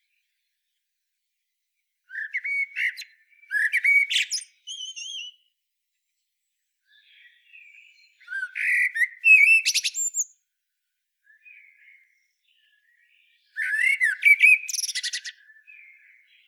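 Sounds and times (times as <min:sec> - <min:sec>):
Common blackbird singing: 0:02.1 - 0:05.5, 0:06.9 - 0:10.4, 0:11.2 - 0:16.4.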